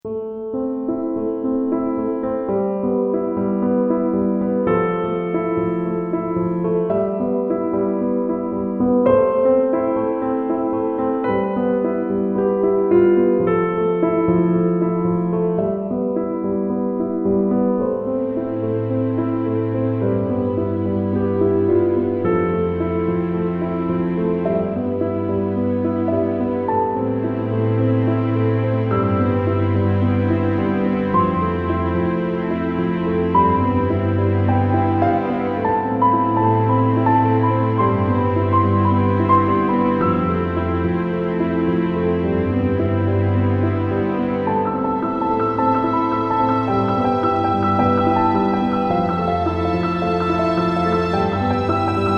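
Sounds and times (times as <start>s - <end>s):
domestic chamber music: 0.0s - 52.1s.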